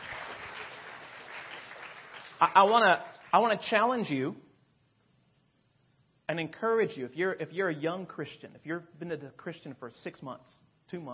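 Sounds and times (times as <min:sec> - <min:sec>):
audience clapping: 0:00.0 - 0:03.5
speech: 0:02.4 - 0:04.4, 0:06.4 - 0:11.1.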